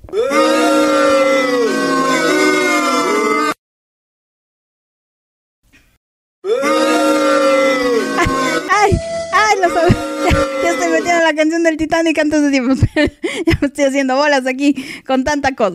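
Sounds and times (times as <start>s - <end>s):
crowd booing: 0.1s - 3.6s, 6.4s - 11.4s
laughter: 6.5s - 11.2s
speech: 11.4s - 15.7s.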